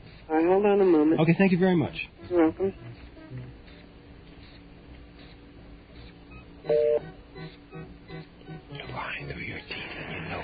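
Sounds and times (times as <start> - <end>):
speech: 0.4 - 3.5, 6.7 - 7.2
German telephone ringing tone: 6.3 - 9.1.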